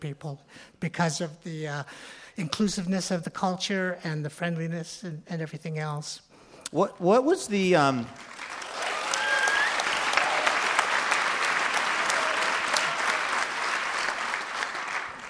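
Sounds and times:
speech: 0:00.0 - 0:08.4
audience applause: 0:08.1 - 0:15.2.

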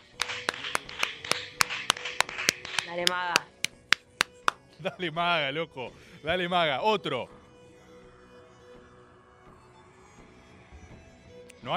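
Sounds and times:
crowd round of applause: 0:00.0 - 0:04.6
speech: 0:03.0 - 0:03.5, 0:04.8 - 0:07.4.

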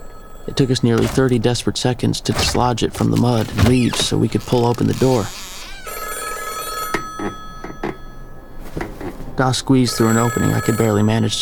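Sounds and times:
old rotary telephone bell ringing: 0:00.0 - 0:01.0, 0:05.8 - 0:08.5, 0:09.8 - 0:11.4
speech: 0:00.5 - 0:05.4, 0:09.4 - 0:11.4.

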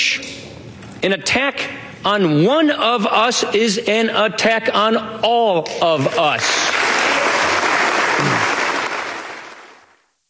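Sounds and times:
speech: 0:01.0 - 0:06.6
standing ovation applause: 0:06.4 - 0:09.8
crowd cheering: 0:06.7 - 0:09.8.

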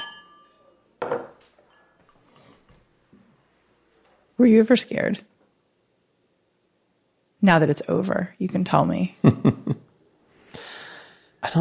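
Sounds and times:
soft ringing glass tones: 0:00.0 - 0:00.8
glasses knocking together: 0:00.0 - 0:02.0
speech: 0:04.4 - 0:05.3, 0:07.4 - 0:09.8
laughter: 0:09.2 - 0:09.9.

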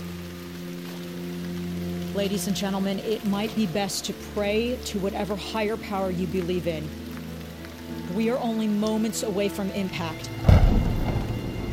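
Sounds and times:
heavy storm rain pouring: 0:00.0 - 0:11.7
speech: 0:02.2 - 0:07.0, 0:08.2 - 0:10.6.

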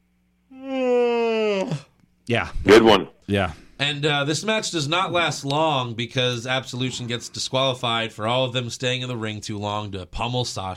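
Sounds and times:
person yawning: 0:00.5 - 0:02.0
speech: 0:02.3 - 0:10.7.

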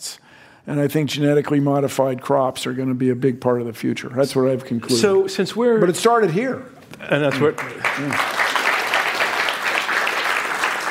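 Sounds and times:
speech: 0:00.7 - 0:08.4
audience applause: 0:07.3 - 0:10.8.

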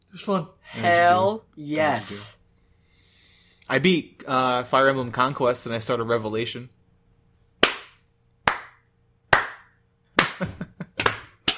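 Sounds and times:
speech: 0:00.1 - 0:02.4, 0:03.7 - 0:06.8
hand clapping: 0:07.6 - 0:11.5.

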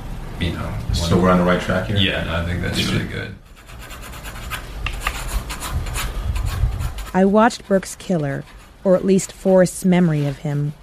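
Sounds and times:
speech: 0:00.4 - 0:03.5, 0:07.1 - 0:10.8
pencil strokes sketching on paper: 0:03.4 - 0:10.8.

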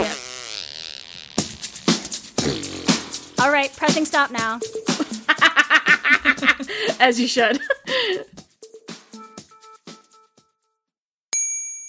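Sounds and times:
mouth fart noises: 0:00.0 - 0:03.4
speech: 0:03.4 - 0:05.1, 0:06.6 - 0:08.3
laughter: 0:05.0 - 0:08.3.

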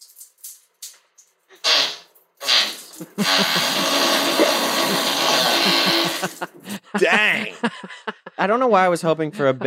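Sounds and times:
loud raspy fart in a played video: 0:01.5 - 0:06.4
speech: 0:03.0 - 0:04.0, 0:05.6 - 0:09.6
laughter: 0:03.0 - 0:08.4.

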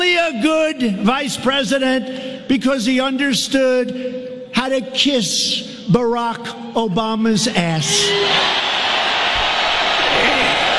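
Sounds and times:
speech: 0:00.3 - 0:08.8
recorded pre-COVID rally crowd cheering: 0:08.1 - 0:10.7.

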